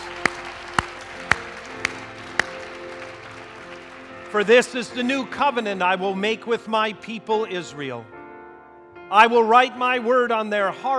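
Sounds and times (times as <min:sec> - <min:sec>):
audience clapping: 0:00.0 - 0:05.3
speech: 0:04.3 - 0:08.2, 0:09.1 - 0:10.9.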